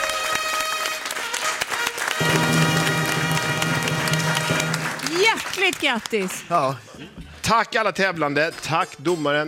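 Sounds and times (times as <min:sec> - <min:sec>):
studio audience applause: 0:00.0 - 0:06.8
speech: 0:05.6 - 0:09.4.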